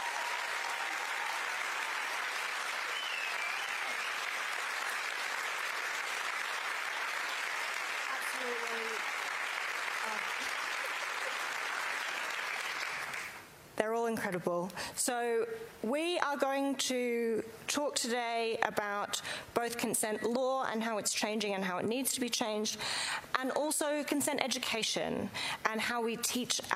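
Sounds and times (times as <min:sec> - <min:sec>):
crowd applause: 0:00.0 - 0:13.4
speech: 0:14.0 - 0:26.7.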